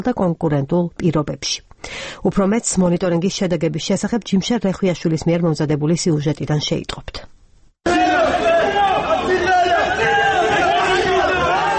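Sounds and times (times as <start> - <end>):
speech: 0.0 - 7.3
crowd shouting insults at opposition party representatives: 7.8 - 11.7.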